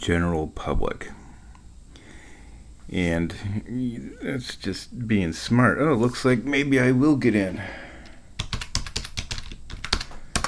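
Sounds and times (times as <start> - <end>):
speech: 0.0 - 1.2, 2.9 - 7.9
typing a password on a computer keyboard: 8.4 - 10.4.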